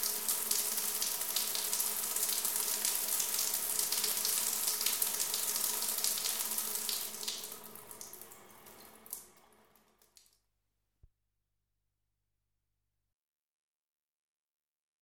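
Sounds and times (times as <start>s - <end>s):
shower water running: 0.0s - 10.1s.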